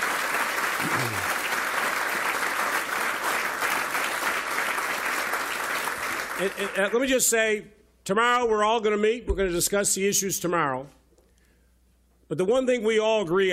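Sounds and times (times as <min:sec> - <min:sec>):
round of applause: 0:00.0 - 0:07.0
speech: 0:06.4 - 0:11.0, 0:12.3 - 0:13.5.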